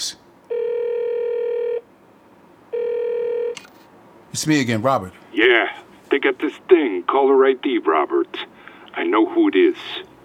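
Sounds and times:
outgoing telephone call ringing on speakerphone: 0:00.5 - 0:01.9, 0:02.7 - 0:03.7
speech: 0:04.4 - 0:05.5, 0:06.1 - 0:10.1.

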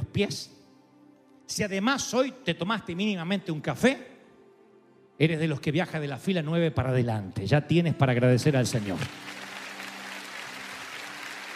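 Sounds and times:
speech: 0:00.2 - 0:00.6, 0:01.5 - 0:04.1, 0:05.2 - 0:09.4
audience applause: 0:08.7 - 0:11.5.

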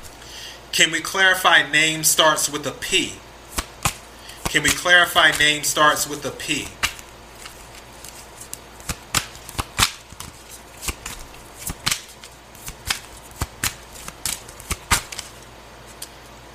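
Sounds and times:
speech: 0:00.8 - 0:03.3, 0:04.5 - 0:06.8
tarot cards being shuffled and handled during a reading: 0:03.5 - 0:16.2.

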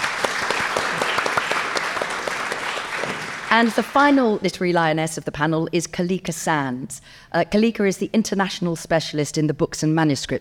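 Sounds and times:
audience applause: 0:00.0 - 0:04.4
speech: 0:03.5 - 0:10.3.

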